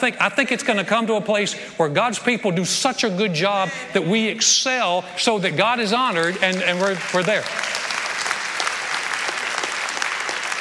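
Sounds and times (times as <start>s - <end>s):
speech: 0.0s - 7.8s
audience clapping: 5.9s - 10.5s.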